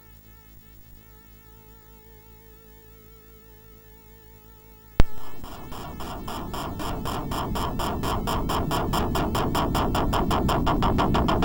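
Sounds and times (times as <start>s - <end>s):
MOS6581R2 SID chip synth: 5.0s - 11.4s.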